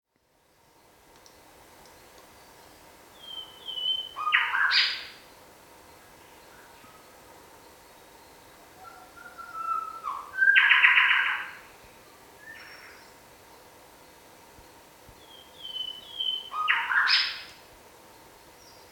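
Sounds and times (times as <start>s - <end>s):
Bower's shrikethrush Colluricincla boweri call: 3.2s - 5.2s, 8.8s - 11.6s, 15.2s - 17.6s.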